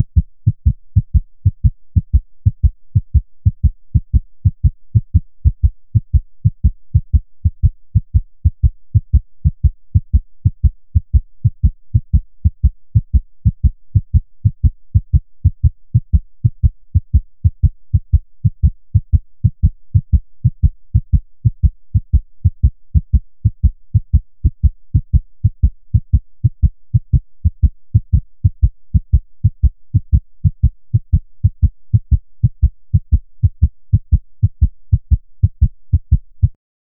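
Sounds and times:
anxious heartbeat: 0.0 - 36.6.

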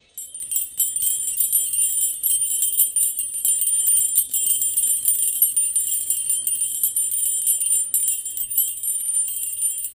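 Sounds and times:
metallic chime: 0.0 - 9.9
sleigh bells: 0.0 - 9.9.

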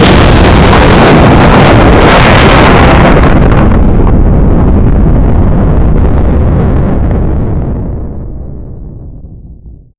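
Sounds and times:
destruction: 0.0 - 7.2.

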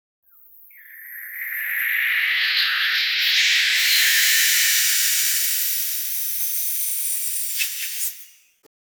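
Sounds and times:
alien spaceship: 0.7 - 4.7.

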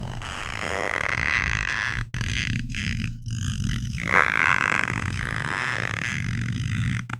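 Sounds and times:
fleshy giant sound: 0.0 - 7.1.

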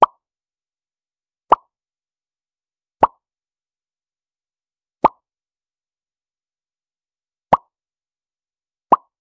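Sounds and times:
pop: 3.0 - 3.2, 8.9 - 9.1.

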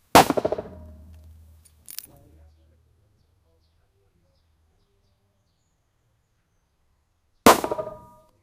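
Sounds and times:
several arrows being shot: 0.1 - 1.5, 7.5 - 8.2.

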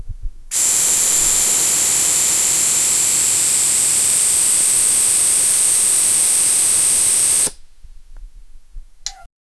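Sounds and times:
air release from a valve: 0.5 - 7.8.

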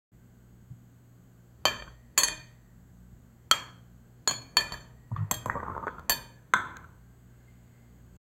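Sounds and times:
dishes: 1.6 - 2.6, 3.5 - 6.9.

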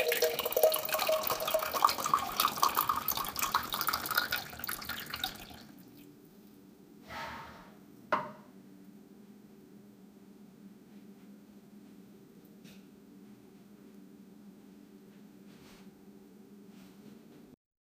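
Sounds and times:
woman urinating in toilet: 0.0 - 6.0.

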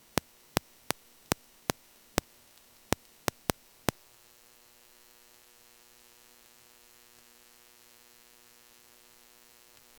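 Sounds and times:
short electrical light flicker: 0.0 - 4.2.

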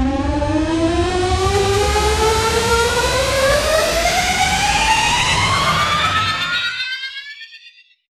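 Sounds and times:
wild chaotic magic spell effect: 0.1 - 7.8.

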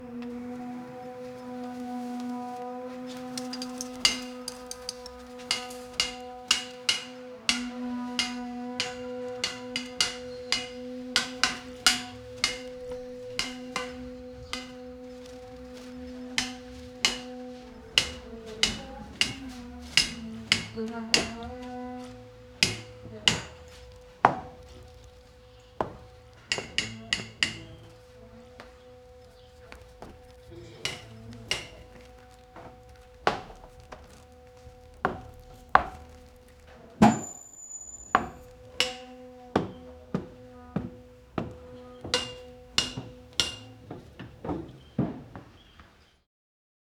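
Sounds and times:
medieval construction sounds: 0.0 - 46.1.

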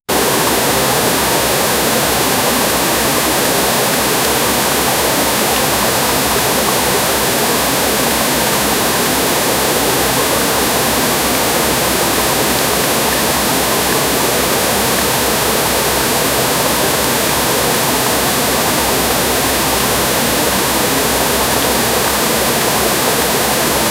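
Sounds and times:
water starting to rush: 0.1 - 23.9.

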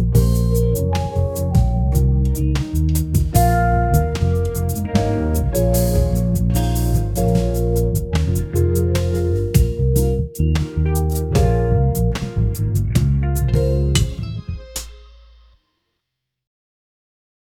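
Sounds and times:
funky chill beat: 0.0 - 15.4.

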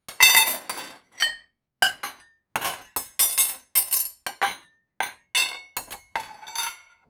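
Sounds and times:
plates and cutlery while dining: 0.2 - 7.0.

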